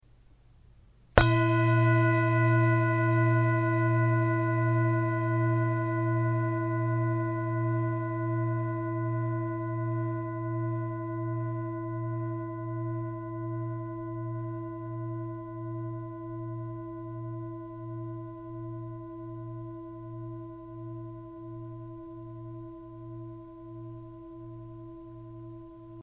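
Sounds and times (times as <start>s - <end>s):
singing bowl: 1.2s - 26.0s.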